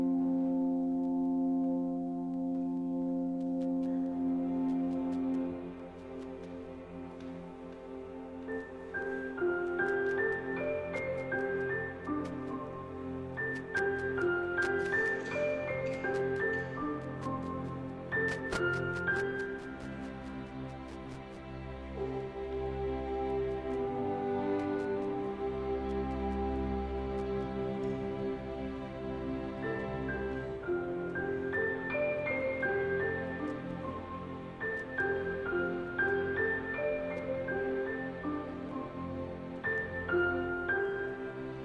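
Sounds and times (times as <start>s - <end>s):
krakowiak dance music in F major: 0.1s - 41.5s.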